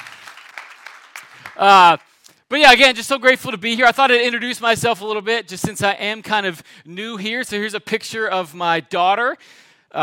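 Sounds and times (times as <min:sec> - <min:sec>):
person clapping in audience: 0:00.0 - 0:01.8
speech: 0:01.6 - 0:10.0.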